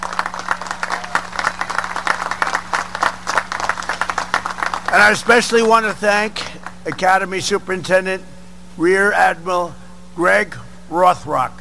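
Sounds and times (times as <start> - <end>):
crowd applause: 0.0 - 5.8
low hum: 0.0 - 11.5
speech: 5.0 - 11.5.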